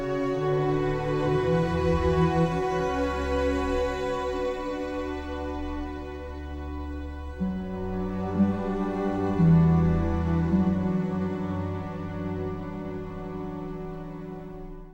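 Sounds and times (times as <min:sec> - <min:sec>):
sad cello: 0:00.0 - 0:14.9.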